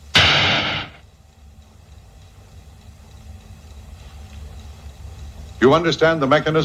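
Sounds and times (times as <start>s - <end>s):
sci-fi blaster fired at an Althea frutex shrub on a terrace: 0.1s - 1.0s
speech: 5.6s - 6.6s.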